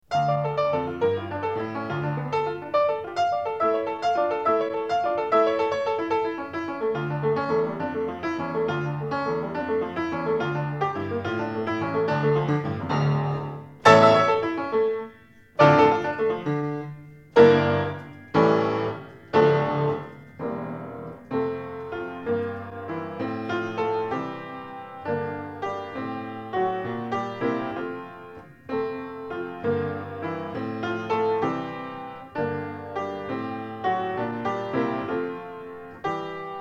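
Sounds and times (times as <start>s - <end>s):
scherzo in D minor: 0.0s - 36.5s.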